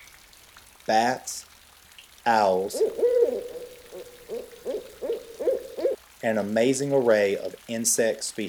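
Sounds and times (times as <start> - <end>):
speech: 0.9 - 1.5, 2.2 - 3.6, 6.2 - 8.4
tree frogs croaking in the rainforest: 2.6 - 6.0.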